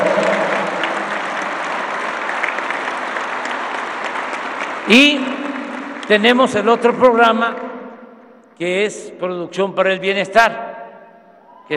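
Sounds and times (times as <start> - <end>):
audience applause: 0.0 - 6.9
speech: 4.9 - 5.3, 6.1 - 7.6, 8.6 - 10.8.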